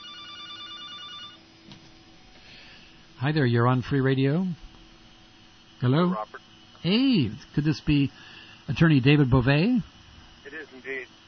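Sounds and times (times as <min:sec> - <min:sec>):
telephone ringing for an incoming caller on a radio call-in show: 0:00.0 - 0:01.4
speech: 0:03.2 - 0:04.6, 0:05.8 - 0:09.9.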